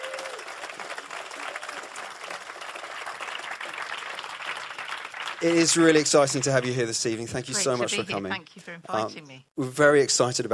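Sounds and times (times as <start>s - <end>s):
audience applause welcoming a bishop to the stage: 0.0s - 7.8s
speech: 5.4s - 10.5s.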